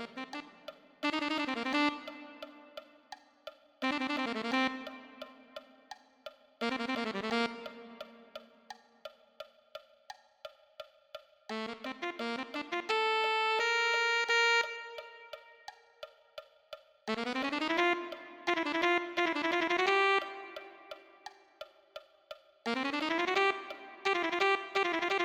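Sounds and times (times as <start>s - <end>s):
alto saxophone: 0.0s - 3.1s, 3.8s - 5.8s, 6.6s - 8.7s, 11.5s - 15.7s, 17.1s - 21.3s, 22.7s - 25.2s.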